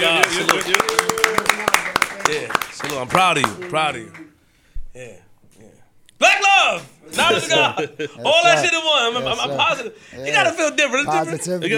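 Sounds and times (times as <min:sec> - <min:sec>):
speech: 0:00.0 - 0:00.8, 0:03.1 - 0:04.2, 0:06.2 - 0:11.7
round of applause, clapping: 0:00.0 - 0:04.3
laughter: 0:07.1 - 0:10.6.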